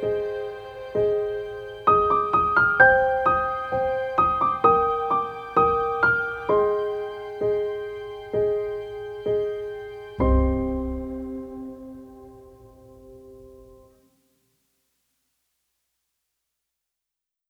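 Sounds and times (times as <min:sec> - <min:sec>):
sad film score: 0:00.0 - 0:13.5.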